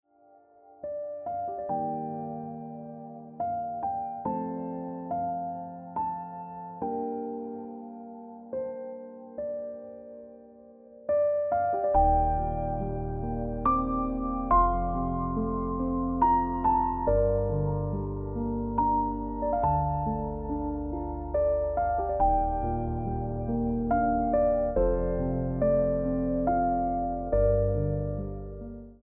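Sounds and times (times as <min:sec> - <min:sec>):
piano ringtone music: 0:00.2 - 0:29.0.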